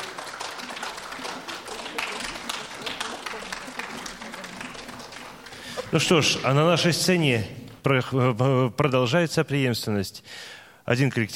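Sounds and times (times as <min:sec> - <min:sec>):
audience applause after a song: 0:00.0 - 0:07.2
speech: 0:05.9 - 0:11.3.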